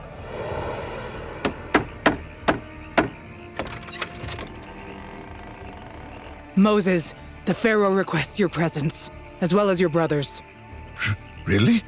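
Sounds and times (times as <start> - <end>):
knocking at a door: 1.4 - 4.5
speech: 6.6 - 11.8.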